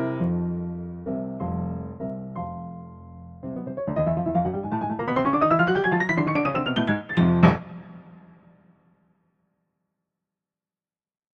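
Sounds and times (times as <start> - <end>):
piano octave etude for the left hand: 0.0 - 8.6.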